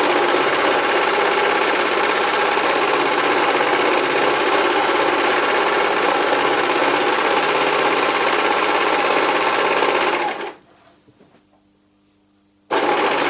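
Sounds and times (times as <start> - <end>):
home sewing machine: 0.0 - 10.6, 12.7 - 13.2.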